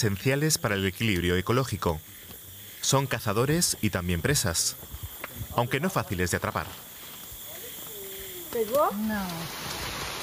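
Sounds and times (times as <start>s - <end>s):
speech: 0.0s - 6.9s, 8.5s - 9.9s
heavy downpour of rain: 9.0s - 10.2s.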